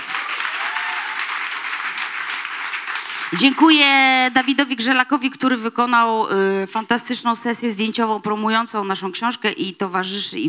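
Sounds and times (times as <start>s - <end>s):
audience applause: 0.0s - 3.7s
speech: 3.3s - 10.4s.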